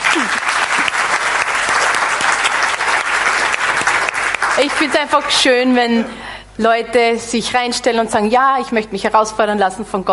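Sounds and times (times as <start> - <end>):
audience applause: 0.0 - 5.3
speech: 4.6 - 10.1.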